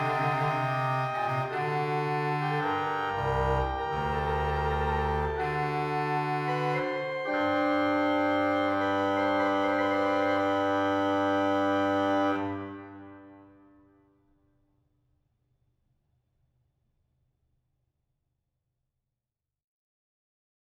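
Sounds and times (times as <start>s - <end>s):
organ playing a basse de cromorne piece: 0.0s - 13.0s.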